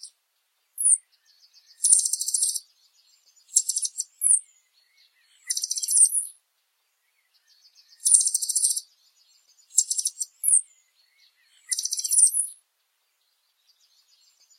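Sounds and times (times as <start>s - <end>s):
Blue dacnis singing: 0.8s - 1.0s, 1.7s - 2.7s, 3.4s - 4.5s, 5.4s - 6.3s, 7.9s - 8.9s, 9.6s - 10.7s, 11.7s - 12.6s.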